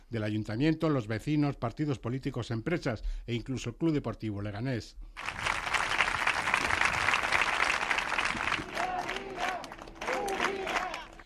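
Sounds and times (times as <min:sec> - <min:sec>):
speech: 0:00.1 - 0:05.5
healthcare workers applauding: 0:05.2 - 0:11.2
voices calling out: 0:08.6 - 0:11.2.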